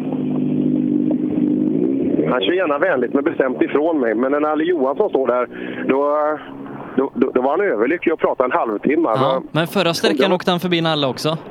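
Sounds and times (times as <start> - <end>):
Volkswagen Golf 3 rally car driving past: 0.0 - 7.8
speech: 2.3 - 11.4.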